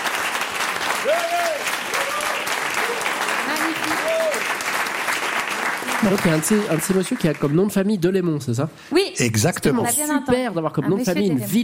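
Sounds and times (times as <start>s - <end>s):
audience applause: 0.0s - 7.9s
speech: 6.0s - 11.6s.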